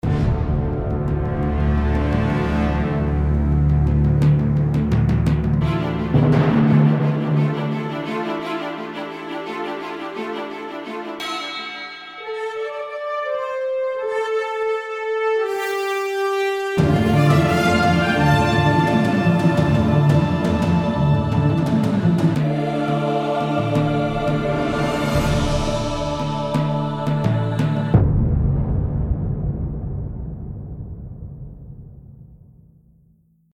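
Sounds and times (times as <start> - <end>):
action music: 0.0 - 32.4.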